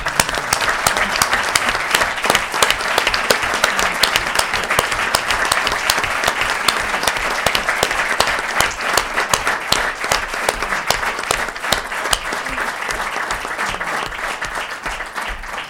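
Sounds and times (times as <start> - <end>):
audience applause: 0.0 - 15.6.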